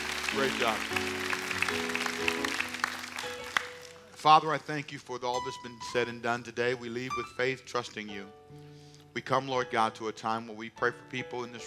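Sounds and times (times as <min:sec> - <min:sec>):
audience clapping: 0:00.0 - 0:04.2
speech: 0:00.3 - 0:02.8, 0:04.2 - 0:11.6.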